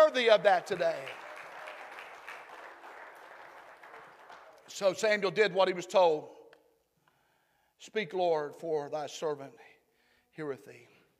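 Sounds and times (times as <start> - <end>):
audience clapping: 0.0 - 5.1
speech: 0.2 - 1.2, 4.7 - 6.4, 7.8 - 9.7, 10.4 - 10.9.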